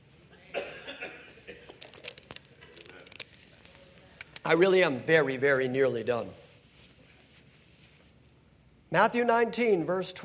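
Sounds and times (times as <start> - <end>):
crinkling and handling noises: 1.5 - 8.4
person drinking water: 1.6 - 4.5
speech: 4.4 - 6.4, 8.9 - 10.2.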